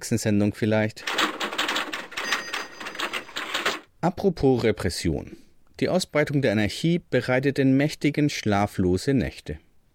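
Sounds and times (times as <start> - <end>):
speech: 0.0 - 1.2, 4.0 - 9.7
fax machine printing: 1.1 - 3.8.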